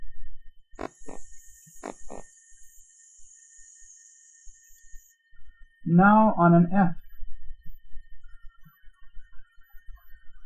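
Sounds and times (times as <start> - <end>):
sustained voiced hiss on S sound: 0.8 - 2.3
speech: 5.9 - 7.0.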